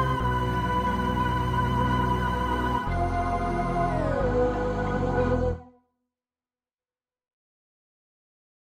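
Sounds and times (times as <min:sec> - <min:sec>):
MIDI music: 0:00.0 - 0:05.8.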